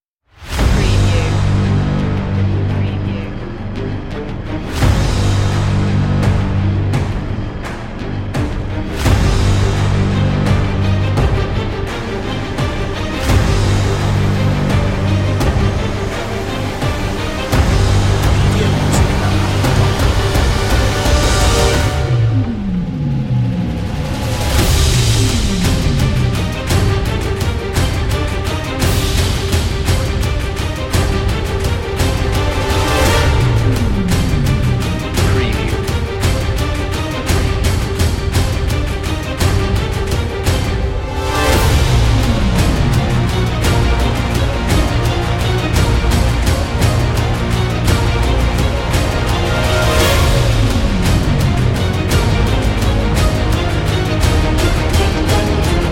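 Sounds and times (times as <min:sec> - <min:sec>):
music without choir: 0:00.0 - 0:55.9.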